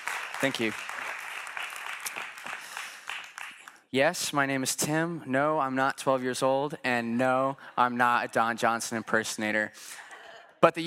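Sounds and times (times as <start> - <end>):
round of applause: 0.0 - 3.9
speech: 0.4 - 1.0, 3.9 - 10.0, 10.6 - 10.8.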